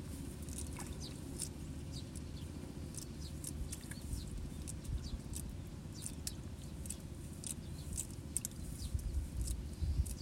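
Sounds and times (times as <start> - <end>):
water at the surface of a rice paddy: 0.0 - 10.2
sparrows chirping: 0.2 - 10.2.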